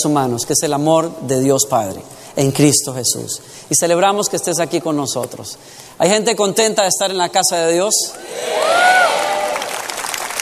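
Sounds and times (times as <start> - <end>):
speech: 0.0 - 9.3
audience applauding and cheering: 8.2 - 10.3.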